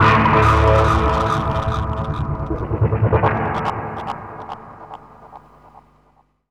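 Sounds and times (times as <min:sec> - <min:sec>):
flying monks musical sound effect: 0:00.0 - 0:04.6.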